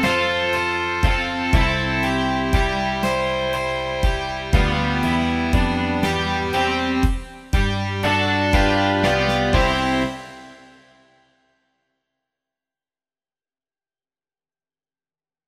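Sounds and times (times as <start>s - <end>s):
rock music: 0.0s - 11.0s.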